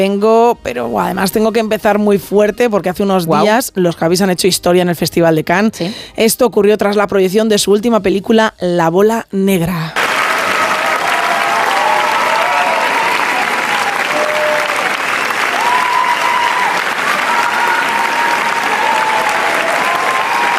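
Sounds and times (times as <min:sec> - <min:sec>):
speech: 0:00.0 - 0:10.0
audience ovation applause: 0:10.0 - 0:20.5
whistles and cheers: 0:10.0 - 0:20.5.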